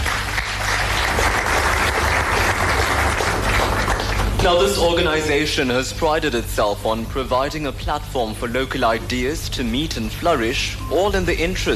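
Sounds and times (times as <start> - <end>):
audience applause: 0.0 - 4.9
speech: 4.4 - 11.7.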